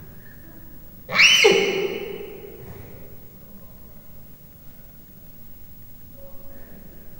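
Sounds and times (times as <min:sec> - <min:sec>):
three-month-old captive leopard cub chirping in a zoo: 0:01.1 - 0:02.7.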